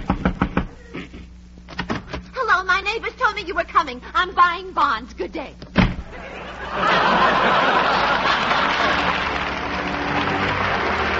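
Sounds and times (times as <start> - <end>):
knocking on a door: 0.0 - 0.7
speech: 2.9 - 5.7, 6.7 - 8.1
laughter: 6.0 - 11.1.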